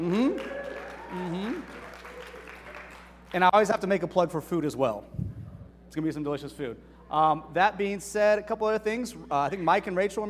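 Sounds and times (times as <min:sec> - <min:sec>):
speech: 0:00.0 - 0:01.7, 0:03.3 - 0:05.2, 0:05.9 - 0:10.2
audience clapping: 0:00.0 - 0:03.5
voices whooping and cheering: 0:00.2 - 0:02.8.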